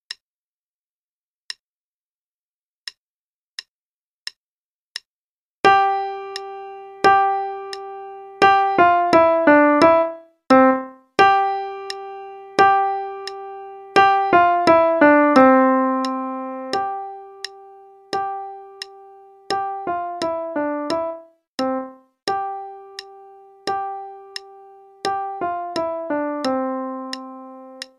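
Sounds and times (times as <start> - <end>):
piano piece played with right hand only: 5.6 - 27.9.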